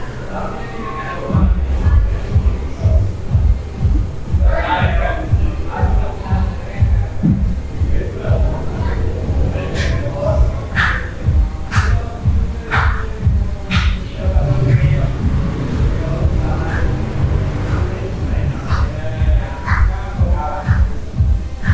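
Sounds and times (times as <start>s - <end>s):
faint voices murmuring: 0.0s - 21.7s
low throbbing hum in a hostel room in Central America: 1.3s - 21.7s.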